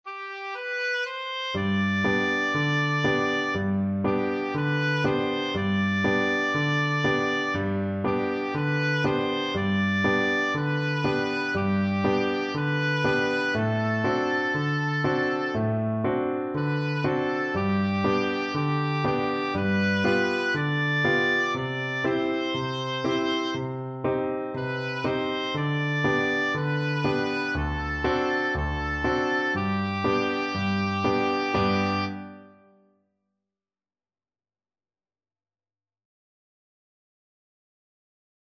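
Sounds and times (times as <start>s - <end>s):
oboe melody: 0.1s - 32.7s.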